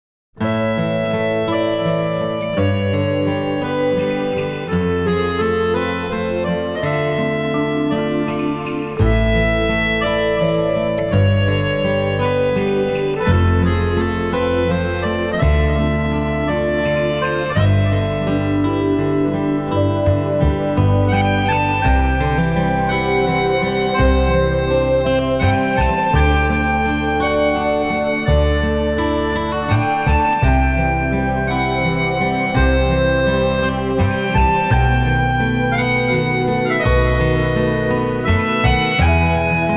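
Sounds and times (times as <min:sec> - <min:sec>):
accordion: 0:00.4 - 0:39.7.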